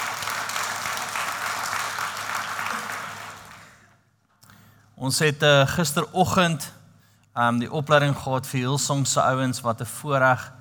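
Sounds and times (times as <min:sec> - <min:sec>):
audience clapping hands: 0:00.0 - 0:04.0
speech: 0:05.0 - 0:06.8, 0:07.4 - 0:10.5.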